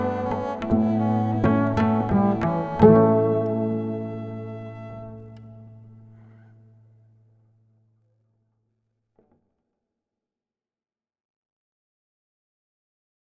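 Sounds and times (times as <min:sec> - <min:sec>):
cello: 0:00.0 - 0:05.9.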